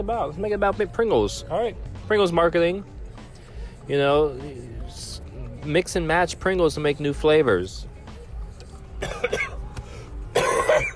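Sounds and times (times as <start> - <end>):
speech: 0.0 - 3.0, 3.9 - 7.9
person coughing on honey roasted peanuts stuck in the throat: 9.0 - 9.7, 10.3 - 10.9.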